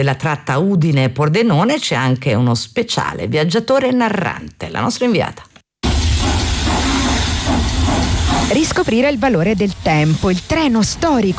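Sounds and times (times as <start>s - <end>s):
speech: 0.0s - 5.5s, 8.5s - 11.3s
historic steam locomotive pulling three carriages, hiss of steam: 5.8s - 11.3s
low rumbling rail noise: 5.8s - 11.3s.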